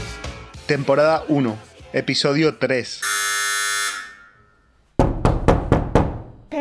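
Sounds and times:
speech: 0.7 - 3.2
doorbell buzzing: 3.0 - 4.7
loud thumps: 5.0 - 6.6.

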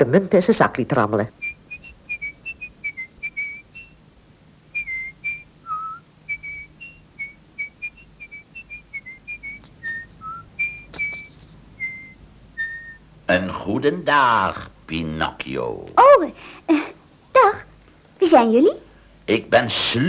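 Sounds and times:
speech: 0.0 - 1.4, 13.9 - 16.9, 18.3 - 20.0
faint rustling: 0.0 - 20.0
low hum: 1.3 - 16.1
person whistling a cheerful tune: 1.4 - 4.0, 4.7 - 13.0.

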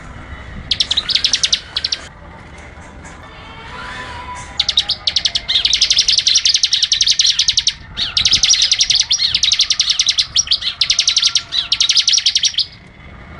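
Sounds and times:
bird song of rapid high-pitched chirping notes: 0.7 - 2.1, 4.5 - 12.8.

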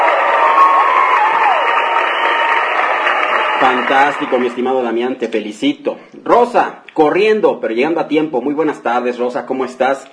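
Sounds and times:
rising whoops from a crowd: 0.0 - 3.6
crowd applauding and cheering: 0.0 - 5.1
speech: 3.6 - 10.1.

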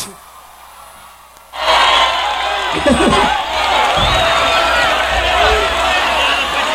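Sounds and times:
football supporters chanting at a live show: 0.6 - 6.7
laughter: 1.6 - 6.7
low thumps: 2.8 - 6.6.

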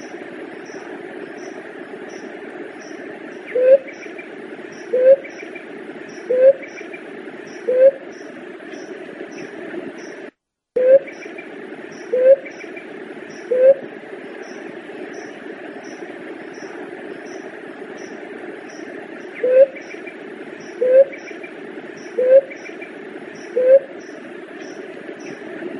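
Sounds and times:
Leptotila dove cooing: 3.5 - 3.9, 4.8 - 5.4, 6.2 - 6.7, 7.6 - 8.0, 12.0 - 12.6, 13.4 - 13.9, 19.4 - 19.8, 20.6 - 21.2, 22.1 - 22.7, 23.4 - 24.0.

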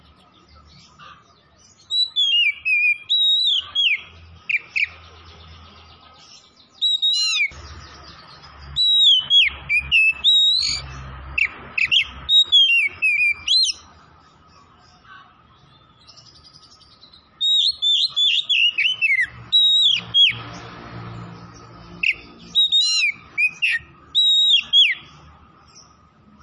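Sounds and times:
Oriental magpie-robin whistling: 0.8 - 5.0, 6.4 - 13.9, 16.0 - 20.4, 22.0 - 25.2.

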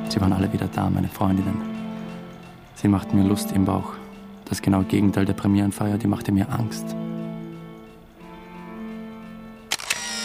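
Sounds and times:
speech: 0.1 - 1.8, 2.8 - 7.0
camera shutter release click: 9.7 - 10.2.

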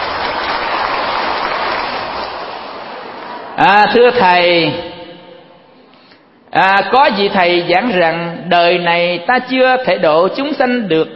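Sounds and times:
audience clapping at a Buddhist dharma lecture: 0.0 - 3.6
speech: 3.6 - 4.9, 6.6 - 11.1.

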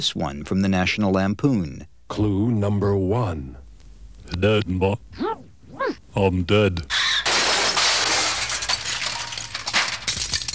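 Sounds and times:
speech: 0.0 - 3.6, 4.3 - 7.0
glass shattering in a car crash: 7.2 - 10.5.

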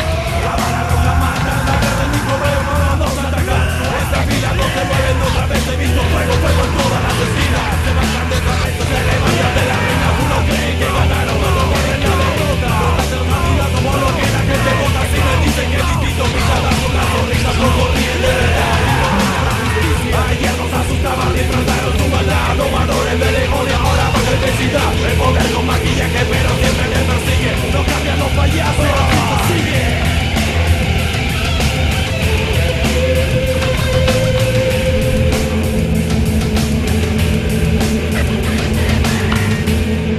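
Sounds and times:
sustained yelling: 0.0 - 20.7, 21.4 - 30.2
laughter: 0.0 - 40.0.

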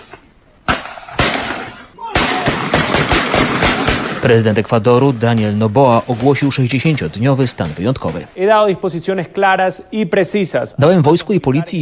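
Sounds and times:
street gunfire: 0.6 - 8.6
speech: 4.2 - 11.8.

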